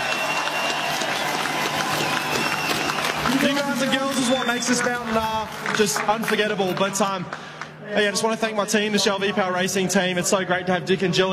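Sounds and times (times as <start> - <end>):
large crowd clapping and cheering outdoors at racetrack: 0.0 - 7.8
speech: 3.8 - 11.3.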